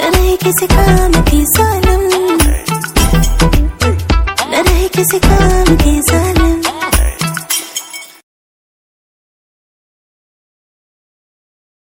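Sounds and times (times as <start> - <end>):
music: 0.0 - 8.2.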